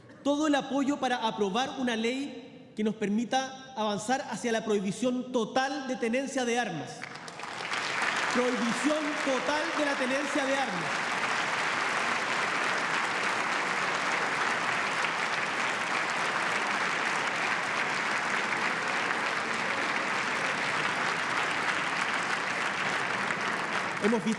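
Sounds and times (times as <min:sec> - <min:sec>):
speech: 0:00.2 - 0:07.1, 0:08.4 - 0:11.1, 0:24.0 - 0:24.3
audience applause in congress: 0:07.0 - 0:24.3.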